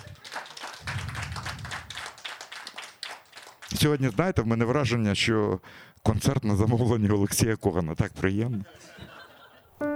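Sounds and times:
laughter: 0.0s - 0.7s, 8.4s - 9.8s
audience clapping: 0.0s - 4.0s
speech: 3.8s - 9.0s.

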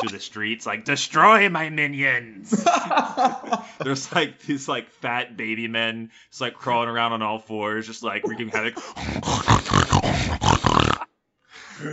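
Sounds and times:
speech: 0.0s - 9.9s
laughter: 2.4s - 4.8s, 8.2s - 9.3s
person imitating a pig with snorts and grunts: 8.2s - 11.1s.

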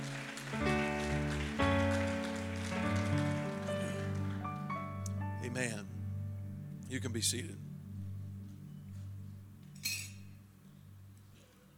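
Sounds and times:
audience clapping hands: 0.0s - 5.2s
sustained keyboard or organ chords: 0.0s - 9.8s
speech: 5.5s - 5.9s, 6.9s - 7.8s.

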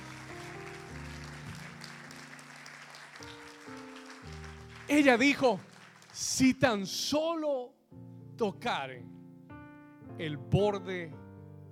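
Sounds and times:
audience hand clapping: 0.0s - 6.7s
speech: 4.9s - 7.8s, 8.4s - 9.1s, 10.2s - 11.7s.

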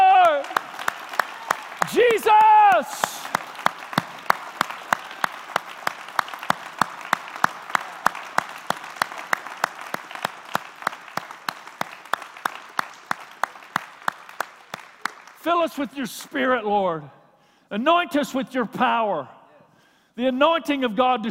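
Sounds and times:
audience clapping hands in a steady rhythmic beat: 0.0s - 15.5s
scattered applause: 0.0s - 15.7s
speech: 15.5s - 19.4s, 20.2s - 21.3s.

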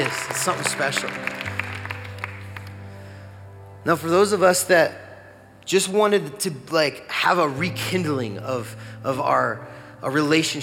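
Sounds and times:
audience applause: 0.0s - 2.9s
speech: 0.4s - 1.6s, 3.8s - 5.0s, 5.6s - 10.6s.

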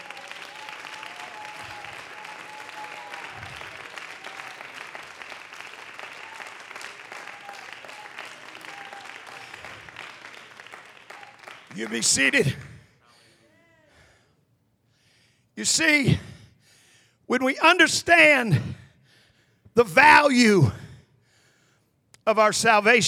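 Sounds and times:
audience clapping hands: 0.0s - 12.9s
speech: 11.8s - 12.7s, 15.6s - 16.2s, 17.3s - 18.7s, 19.8s - 20.8s, 22.3s - 23.0s.

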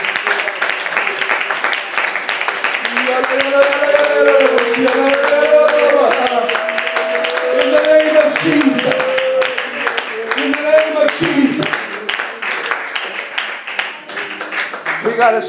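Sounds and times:
audience clapping hands: 0.0s - 15.4s
speech: 3.3s - 5.6s, 15.2s - 15.4s.

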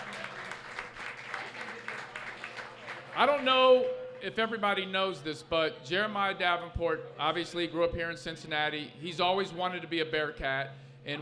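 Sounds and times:
crowd applauding: 0.0s - 4.3s
speech: 3.2s - 11.2s.

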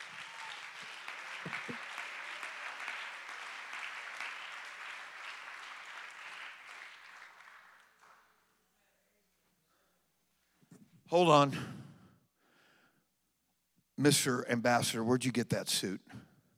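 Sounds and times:
audience clapping hands: 0.0s - 8.6s
speech: 11.1s - 11.8s, 14.0s - 16.3s.

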